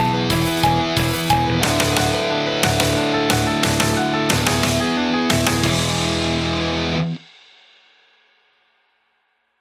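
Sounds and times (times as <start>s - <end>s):
backing track music: 0.0s - 7.2s
guitar arpeggio exercise: 0.0s - 7.2s.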